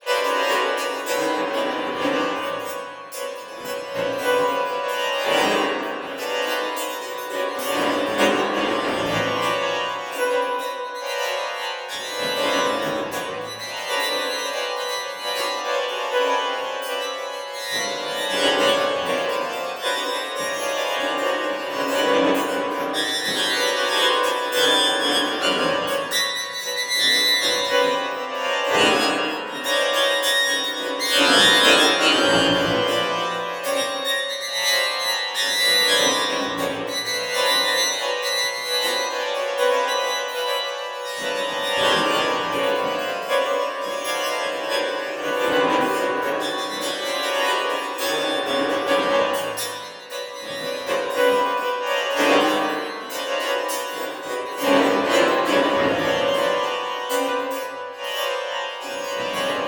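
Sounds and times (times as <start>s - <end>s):
strings: 0.0s - 59.6s.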